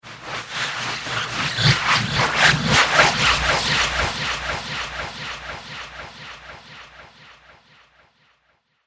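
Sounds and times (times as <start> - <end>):
slurpy alien atmospherics: 0.2 - 5.2.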